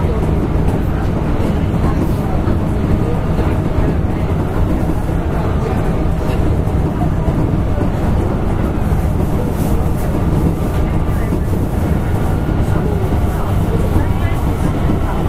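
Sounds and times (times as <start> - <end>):
Keihan 6000 series electric train rumble: 0.0 - 15.2.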